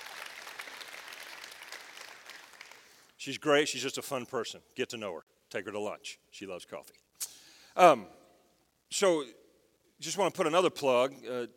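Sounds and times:
audience applause: 0.0s - 3.0s
speech: 3.2s - 7.0s, 7.8s - 8.2s, 8.9s - 9.4s, 10.0s - 11.5s.

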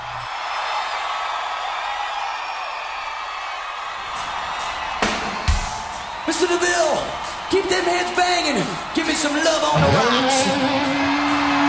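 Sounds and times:
concert crowd: 0.0s - 11.6s
live rock concert recording: 4.2s - 11.6s
speech: 6.3s - 11.0s.

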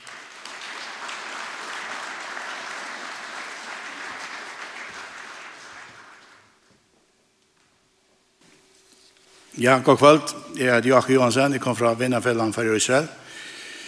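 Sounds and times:
audience applause at a Holocaust remembrance gathering: 0.0s - 6.6s
speech: 9.6s - 13.3s.

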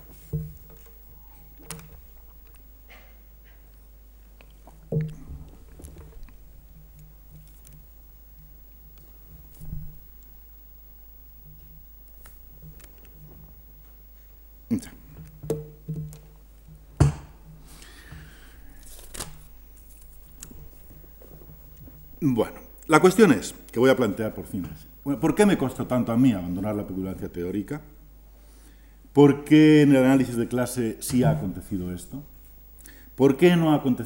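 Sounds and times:
person sipping a drink: 1.2s - 7.8s
speech: 14.8s - 15.0s, 22.2s - 28.0s, 29.2s - 32.3s, 33.2s - 34.0s.

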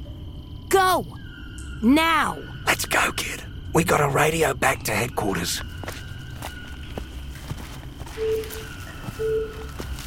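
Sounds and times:
speech: 0.9s - 1.2s, 1.8s - 5.8s
electronic beeping signal or alarm: 8.2s - 9.8s.

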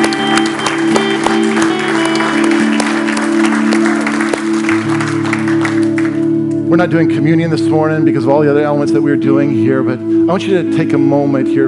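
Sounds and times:
audience hand clapping: 0.0s - 6.7s
speech: 6.8s - 11.6s.

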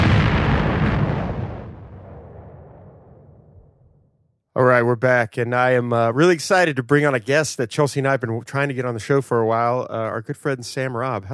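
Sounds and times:
explosion sound effect mimicking a self-destructing message: 0.0s - 4.1s
speech: 4.6s - 11.3s.

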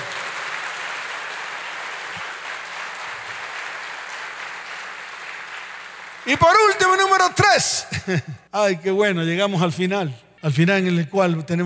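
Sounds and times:
audience applause: 0.0s - 7.3s
speech: 6.3s - 11.6s
laughter: 7.7s - 8.5s.

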